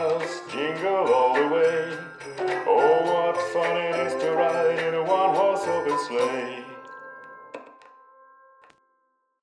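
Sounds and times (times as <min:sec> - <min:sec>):
cheerful Christmas song: 0:00.0 - 0:07.5.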